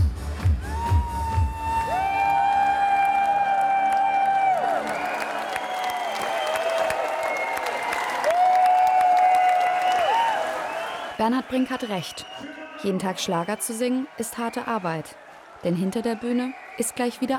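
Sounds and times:
concert audience clapping along to loud music: 0.4s - 17.3s
speech: 11.2s - 17.3s.

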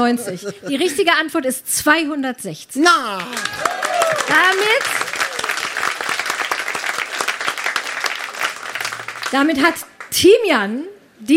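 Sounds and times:
laughter: 0.0s - 1.2s
speech: 0.0s - 5.0s, 9.3s - 11.3s
audience applause: 3.0s - 10.1s.

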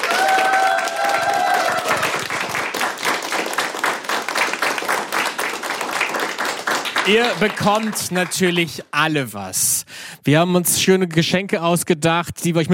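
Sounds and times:
audience applause: 0.0s - 8.8s
speech: 7.1s - 12.7s.

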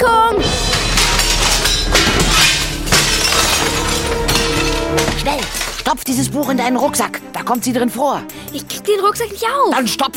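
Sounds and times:
window glass shattering: 0.4s - 6.1s
speech: 5.9s - 10.1s.

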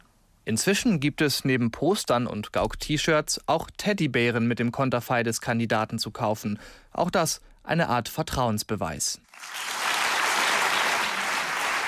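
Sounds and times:
speech: 0.5s - 9.9s
audience applause for a political candidate after his speech: 9.3s - 11.8s.

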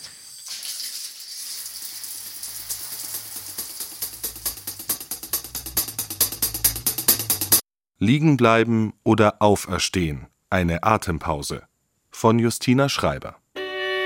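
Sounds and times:
shower water running: 0.0s - 5.6s
speech: 8.0s - 13.4s.

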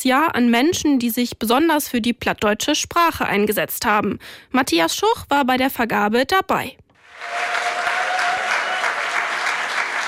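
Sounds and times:
speech: 0.0s - 7.7s
sustained applause for an award winner: 7.0s - 10.0s.

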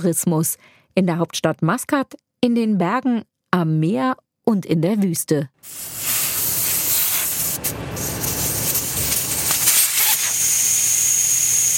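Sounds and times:
speech: 0.0s - 6.2s
air hissing out of off-road vehicle tyres: 5.6s - 10.6s.

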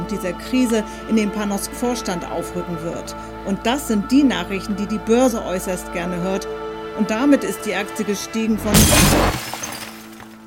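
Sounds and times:
speech: 0.1s - 9.4s
glass shards tinkling: 8.7s - 10.4s
television screen smashed with a hammer: 8.7s - 10.4s.

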